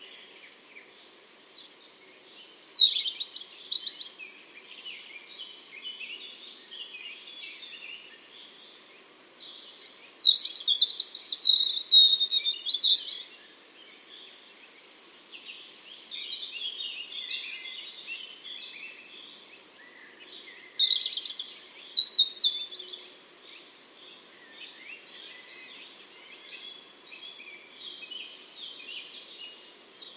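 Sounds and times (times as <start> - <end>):
hiss: 0.0 - 30.1
European robin singing: 1.6 - 30.1.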